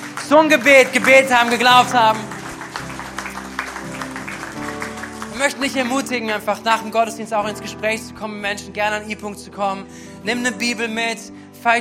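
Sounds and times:
crowd clapping: 0.0 - 6.9
low sustained musical tone: 0.0 - 11.2
speech: 0.3 - 2.3, 5.4 - 11.7.

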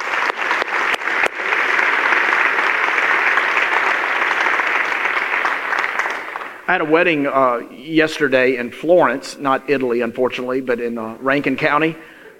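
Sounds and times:
audience clapping: 0.0 - 7.2
speech: 6.7 - 12.1.

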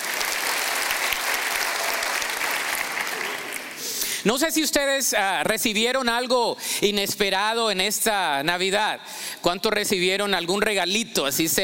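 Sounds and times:
audience applauding loudly: 0.0 - 4.2
speech: 4.2 - 11.6.

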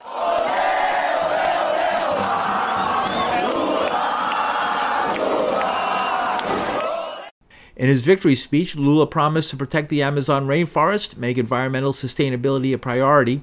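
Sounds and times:
street crowd in Brazil cheering as Lula takes the lead: 0.0 - 7.4
speech: 7.8 - 13.4.

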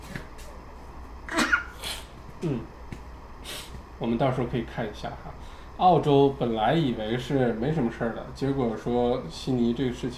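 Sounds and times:
sneeze: 1.3 - 2.1
speech: 2.4 - 2.7, 4.0 - 10.1.

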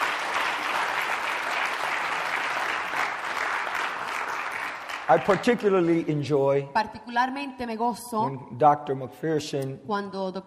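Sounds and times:
audience applause: 0.0 - 6.1
speech: 5.1 - 10.4.

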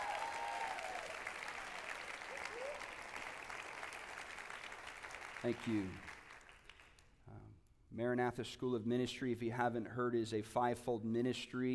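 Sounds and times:
round of applause: 0.0 - 7.2
speech: 5.4 - 6.2, 7.3 - 11.7.

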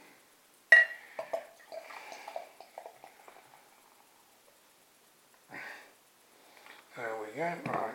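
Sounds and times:
glass clink: 0.7 - 3.1
beer pouring into a glass: 0.8 - 4.6
speech: 7.4 - 7.8.

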